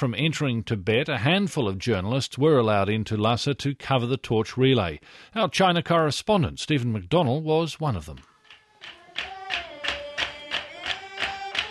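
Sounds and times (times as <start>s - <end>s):
speech: 0.0s - 9.0s
Tibetan workers banging and tapping in time restoring historic buildings: 8.4s - 11.6s
Tibetan workers singing while restoring historic buildings: 8.8s - 11.6s.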